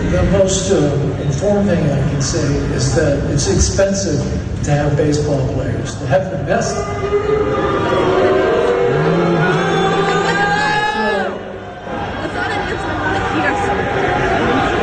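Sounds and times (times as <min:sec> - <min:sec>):
speech: 0:00.1 - 0:08.0
crowd booing: 0:06.6 - 0:14.8.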